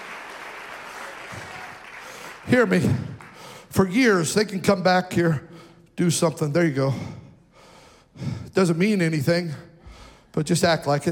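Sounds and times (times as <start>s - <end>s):
audience clapping hands: 0.0s - 3.7s
speech: 2.5s - 3.1s, 3.7s - 7.2s, 8.2s - 9.7s, 10.4s - 11.1s.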